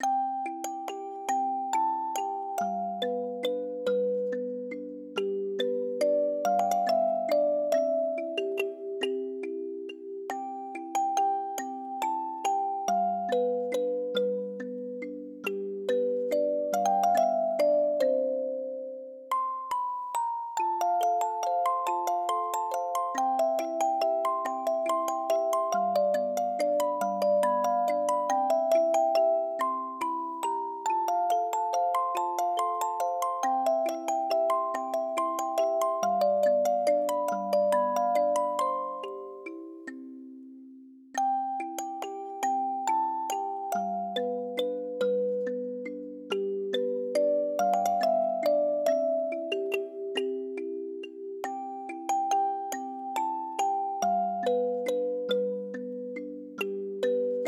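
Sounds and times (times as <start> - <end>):
music box: 0.0 - 57.4.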